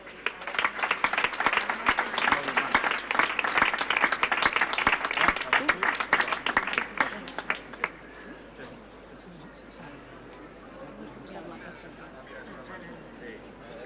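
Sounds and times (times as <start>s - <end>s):
audience applause: 0.0s - 8.0s.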